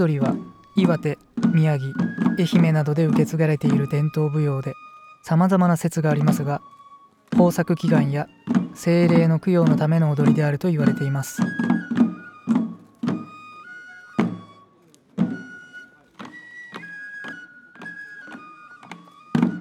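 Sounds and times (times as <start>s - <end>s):
Shishi odori deer dance music: 0.0s - 6.6s, 7.4s - 12.9s
person narrating: 0.0s - 6.6s, 7.4s - 11.4s.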